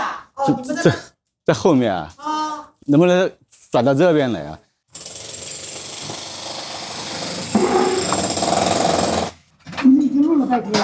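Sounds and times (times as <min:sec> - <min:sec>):
speech: 0:00.4 - 0:02.3, 0:02.9 - 0:04.6, 0:10.5 - 0:10.8
electric drill drilling nearby: 0:05.0 - 0:09.4.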